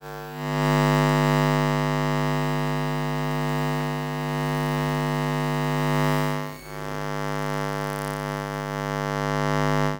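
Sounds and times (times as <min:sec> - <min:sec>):
electromagnetic field noise: 0:00.1 - 0:09.9.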